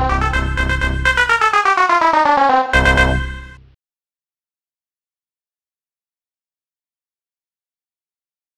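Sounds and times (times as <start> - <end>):
pulse tone: 0.2 - 3.6.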